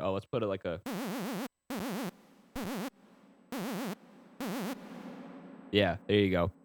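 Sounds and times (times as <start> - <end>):
speech: 0.1 - 1.5, 5.7 - 6.6
bright buzzy synth note with fast wavering vibrato and heavy reverb: 1.7 - 2.9, 3.5 - 6.0.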